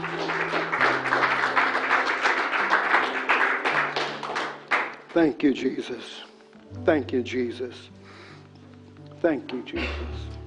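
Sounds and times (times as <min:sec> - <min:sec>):
audience hand clapping: 0:00.0 - 0:05.4
speech: 0:05.2 - 0:08.0, 0:09.2 - 0:10.4.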